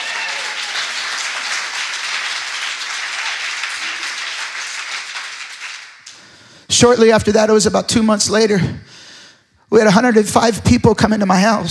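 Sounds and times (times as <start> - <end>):
audience applause: 0.0 - 6.2
speech: 6.8 - 8.9, 9.7 - 11.7.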